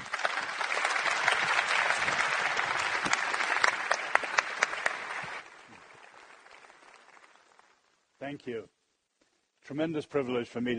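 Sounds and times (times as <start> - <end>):
audience applause welcoming a speaker: 0.0 - 8.0
speech: 8.3 - 8.8, 9.7 - 10.7.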